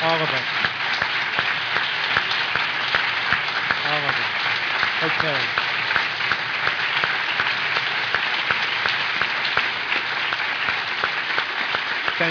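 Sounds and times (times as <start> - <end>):
audience applause: 0.0 - 12.2
speech: 5.2 - 5.6.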